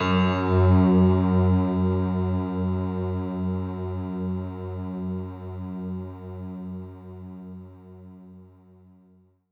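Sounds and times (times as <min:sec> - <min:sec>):
synth note F#2: 0:00.0 - 0:03.9.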